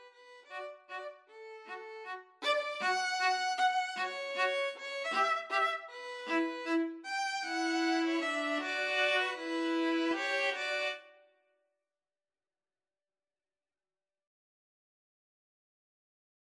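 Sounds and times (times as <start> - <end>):
string trio playing a waltz: 0.0 - 11.0.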